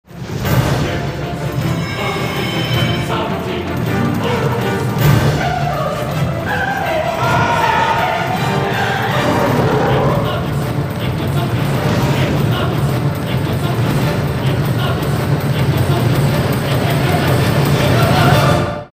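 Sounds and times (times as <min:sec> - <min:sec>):
trailer choral battle music: 0:00.1 - 0:18.9.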